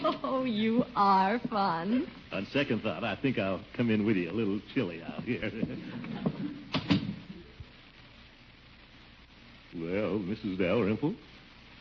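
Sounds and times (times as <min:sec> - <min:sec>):
speech: 0:00.4 - 0:06.4, 0:09.8 - 0:11.3
door opening and closing: 0:06.7 - 0:07.3.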